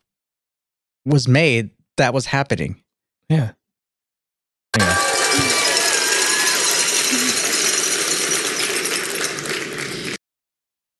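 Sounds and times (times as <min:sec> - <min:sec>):
speech: 0:01.0 - 0:03.6
small cowbells ringing: 0:04.8 - 0:09.6.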